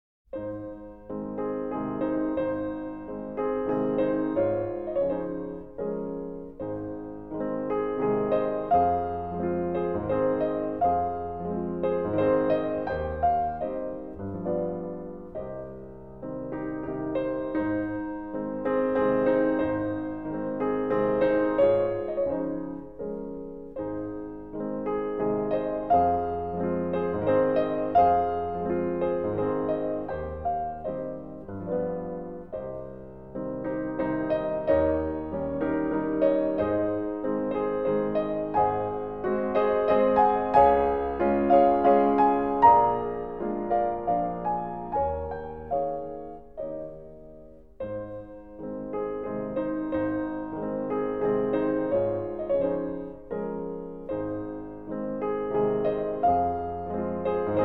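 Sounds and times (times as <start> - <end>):
waltz in A flat major: 0.4 - 57.6.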